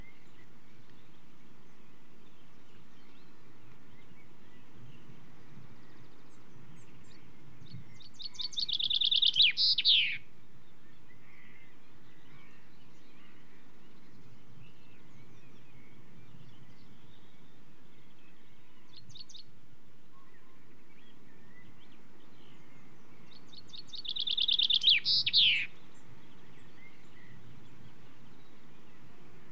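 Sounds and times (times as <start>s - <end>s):
common chaffinch singing: 6.1s - 10.2s, 21.4s - 29.5s.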